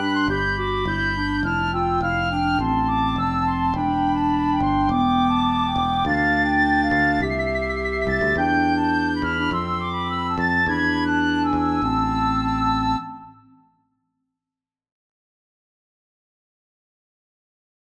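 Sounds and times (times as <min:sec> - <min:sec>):
song: 0:00.0 - 0:13.7.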